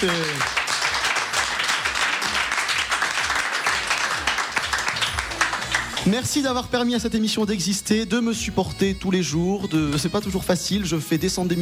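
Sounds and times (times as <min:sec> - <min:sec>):
speech: 0:00.0 - 0:00.6, 0:06.1 - 0:11.6
audience applause: 0:00.0 - 0:06.2.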